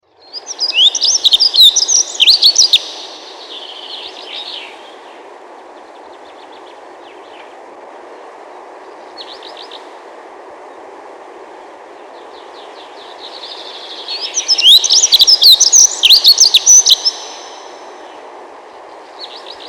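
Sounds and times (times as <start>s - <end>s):
dunnock singing thin notes, trills and jangling burst: 0.0s - 7.6s, 12.0s - 19.6s.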